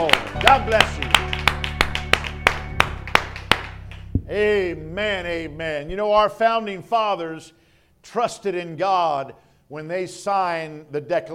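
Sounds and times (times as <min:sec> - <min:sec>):
speech: 0:00.0 - 0:01.0, 0:04.3 - 0:11.3
audience clapping: 0:00.0 - 0:04.3.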